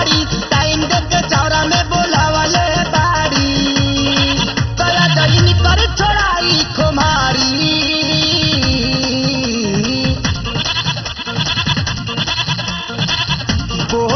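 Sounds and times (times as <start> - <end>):
dense continuous instrumental music track: 0.2 - 14.1
goat bleating: 4.1 - 5.2, 10.4 - 13.8.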